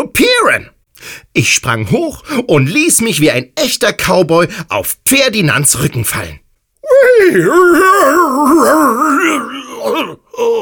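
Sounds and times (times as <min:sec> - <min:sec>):
speech: 0:00.0 - 0:10.6
human voice imitating a horse whinny and snorts: 0:06.8 - 0:10.6.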